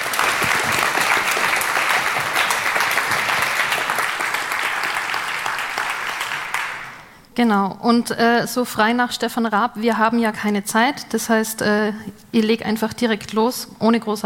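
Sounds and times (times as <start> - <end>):
audience applause: 0.0 - 7.1
speech: 7.4 - 14.2.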